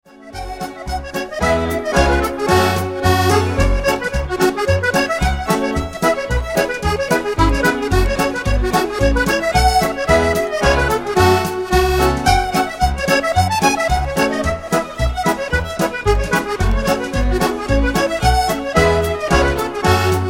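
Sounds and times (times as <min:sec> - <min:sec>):
hornpipe tune: 0:00.1 - 0:20.2.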